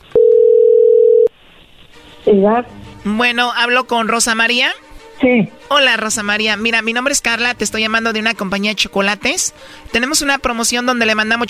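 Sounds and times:
steady single-pitched telephone tone: 0.1 - 1.3
speech: 2.3 - 11.4.

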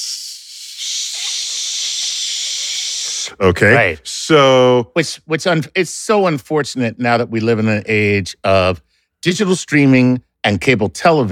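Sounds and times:
white noise hiss: 0.0 - 3.4
speech: 3.3 - 11.3.

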